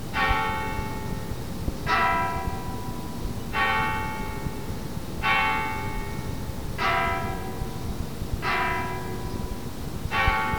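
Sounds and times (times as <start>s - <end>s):
funeral toll of church bells: 0.1s - 10.5s.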